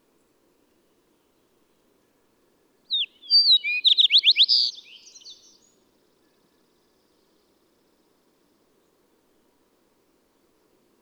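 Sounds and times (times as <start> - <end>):
songbird singing: 2.9 - 8.2.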